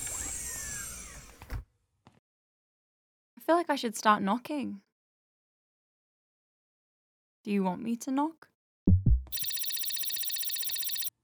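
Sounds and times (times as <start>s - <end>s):
speech: 3.5s - 4.9s, 7.4s - 8.5s
pager bleeping: 9.3s - 11.2s.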